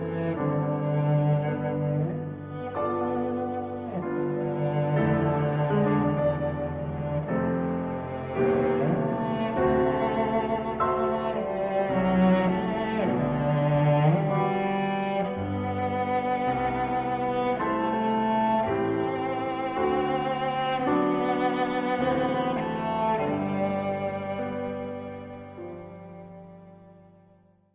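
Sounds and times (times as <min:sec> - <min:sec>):
adagio for cello and piano: 0:00.0 - 0:27.7.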